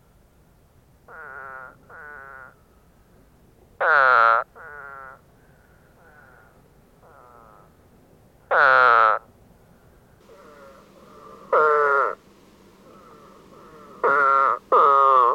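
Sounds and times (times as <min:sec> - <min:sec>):
eastern spadefoot buzzy calls: 0:01.1 - 0:02.6, 0:03.8 - 0:05.2, 0:08.5 - 0:09.3, 0:10.2 - 0:15.3.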